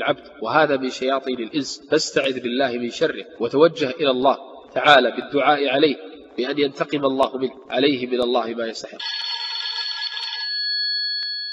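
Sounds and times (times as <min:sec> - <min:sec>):
speech: 0:00.0 - 0:09.2
telephone ringing: 0:09.0 - 0:11.5.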